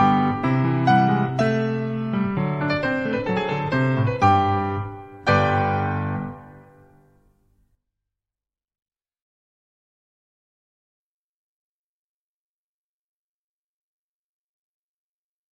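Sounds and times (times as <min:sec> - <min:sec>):
ballet class music for battements tendus and glissés: 0:00.0 - 0:07.2.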